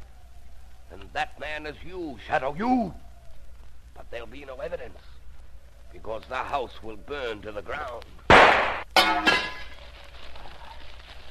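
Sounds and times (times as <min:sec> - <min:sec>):
speech: 0:00.9 - 0:03.0, 0:04.0 - 0:05.2, 0:05.9 - 0:09.5
lamp breaking: 0:08.3 - 0:09.8.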